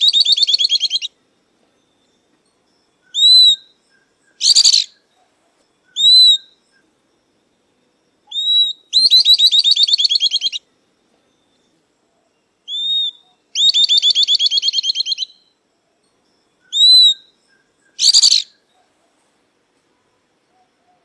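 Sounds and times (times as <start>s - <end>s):
southern beardless-tyrannulet song: 0.0s - 1.1s, 3.1s - 5.1s, 5.9s - 6.6s, 8.3s - 10.6s, 12.7s - 15.5s, 16.7s - 18.8s.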